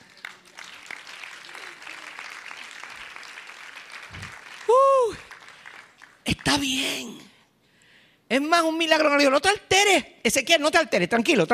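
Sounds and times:
audience applause: 0:00.0 - 0:06.8
speech: 0:06.5 - 0:07.3, 0:08.3 - 0:11.5.

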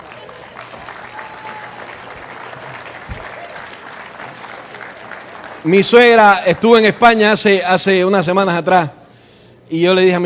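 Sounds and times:
audience applause in a large room: 0:00.0 - 0:07.4
speech: 0:05.6 - 0:09.0, 0:09.7 - 0:10.2.

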